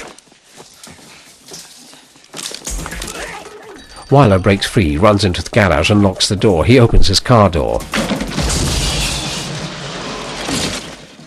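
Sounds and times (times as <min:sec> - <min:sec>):
speech: 0:04.1 - 0:08.2
bomb blast explosion: 0:07.9 - 0:11.0.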